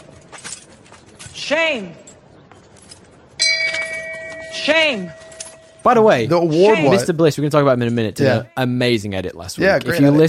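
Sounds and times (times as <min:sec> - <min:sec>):
speech: 0:01.4 - 0:02.0, 0:04.6 - 0:05.2, 0:05.8 - 0:10.2
shame bell ringing: 0:03.4 - 0:07.0.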